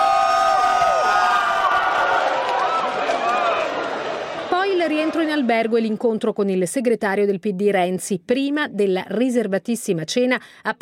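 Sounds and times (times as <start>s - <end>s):
large crowd in the street cheering and shouting at a visitor: 0.0s - 5.7s
speech: 5.0s - 10.8s.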